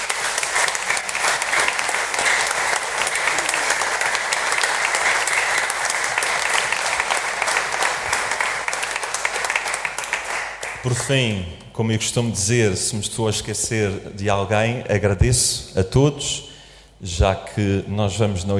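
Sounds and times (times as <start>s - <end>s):
applause from the audience: 0.0s - 11.1s
speech: 10.9s - 18.5s.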